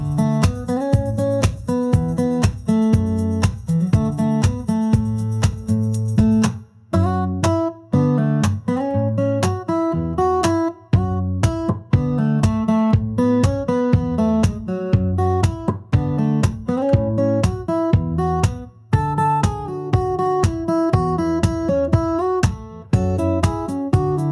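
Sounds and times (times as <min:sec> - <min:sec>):
acoustic beat: 0:00.0 - 0:24.3.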